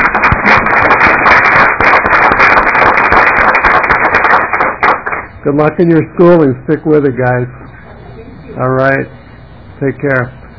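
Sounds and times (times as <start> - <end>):
crowd applause: 0.0 - 5.3
speech: 5.5 - 7.6, 8.6 - 9.2, 9.8 - 10.4.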